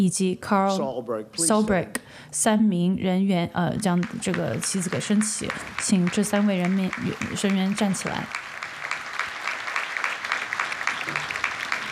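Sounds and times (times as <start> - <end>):
speech: 0.0 - 8.6
audience applause: 3.9 - 11.8.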